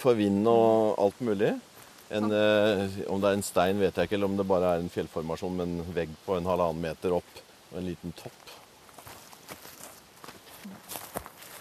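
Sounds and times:
speech: 0:00.0 - 0:08.6
footsteps crossing a rocky hill: 0:00.9 - 0:02.6, 0:08.4 - 0:11.5.

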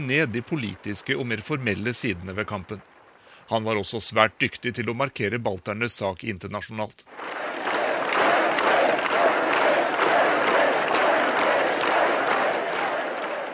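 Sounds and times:
speech: 0:00.0 - 0:02.9, 0:03.5 - 0:07.6
protest crowd chanting rhythmically: 0:07.1 - 0:13.5.

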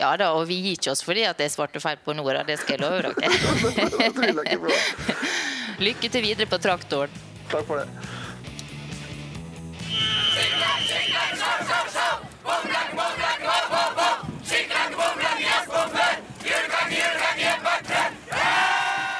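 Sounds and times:
speech: 0:00.0 - 0:08.2
laughter: 0:02.4 - 0:06.5
crowd of graduating students cheering and chanting: 0:09.9 - 0:19.1.

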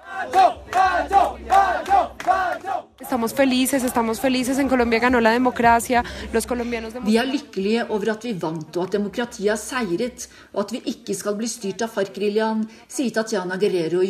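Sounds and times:
Colombians singing at the no campaign election vigil: 0:00.0 - 0:07.2
speech: 0:03.1 - 0:14.0.

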